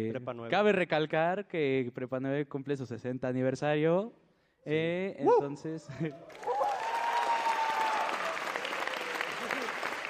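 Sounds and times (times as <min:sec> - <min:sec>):
speech: 0:00.0 - 0:06.6
crowd applauding: 0:06.2 - 0:10.0.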